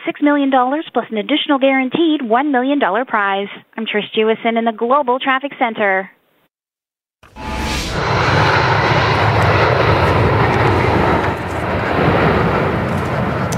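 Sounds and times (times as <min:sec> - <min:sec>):
speech: 0:00.1 - 0:06.2
airplane engine: 0:07.2 - 0:13.5.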